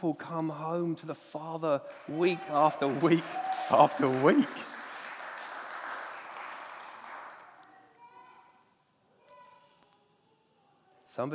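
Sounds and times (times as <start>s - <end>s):
speech: 0.0s - 4.7s, 11.2s - 11.3s
audience clapping: 1.6s - 7.9s.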